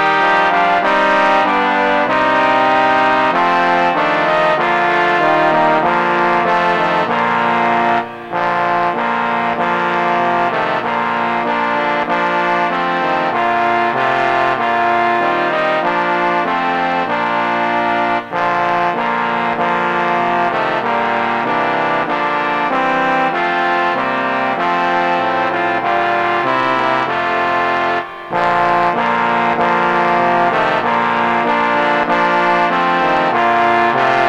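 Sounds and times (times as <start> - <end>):
trombone quartet playing: 0.0 - 34.2.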